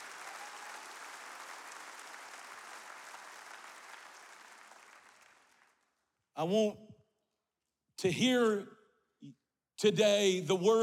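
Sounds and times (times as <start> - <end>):
audience clapping hands: 0.0 - 6.0
speech: 6.4 - 6.8, 8.0 - 10.8.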